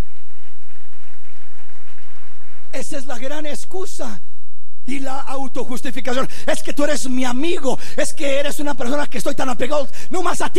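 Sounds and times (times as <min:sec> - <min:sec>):
audience applause: 0:00.0 - 0:02.8
speech: 0:02.8 - 0:10.5.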